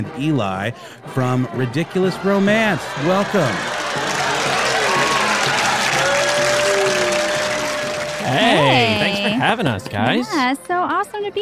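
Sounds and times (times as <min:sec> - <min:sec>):
speech: 0:00.0 - 0:03.8, 0:08.3 - 0:11.3
laughter: 0:00.0 - 0:10.2
crowd noise: 0:00.0 - 0:11.3
applause sound effect played as a cue: 0:01.9 - 0:10.0.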